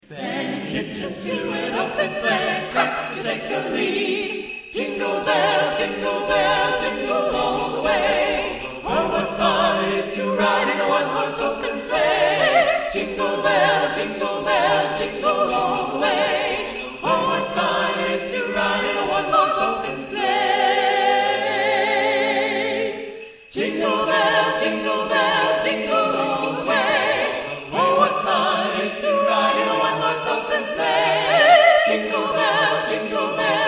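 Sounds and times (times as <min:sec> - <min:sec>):
Christmas song: 0:00.0 - 0:33.6.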